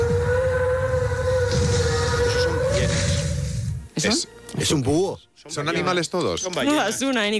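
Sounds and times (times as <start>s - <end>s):
imagined Brachiosaurus dinosaur call: 0.0s - 3.4s
speech: 4.0s - 7.3s.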